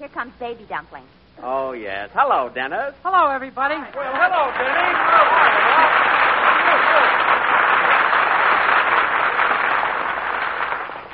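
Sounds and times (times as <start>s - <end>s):
speech: 0.0s - 6.0s
studio audience applause on a radio comedy show: 3.9s - 11.1s.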